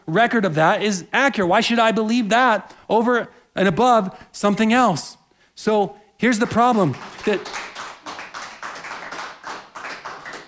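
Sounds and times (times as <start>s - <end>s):
speech: 0.1s - 7.7s
audience clapping: 6.4s - 10.4s.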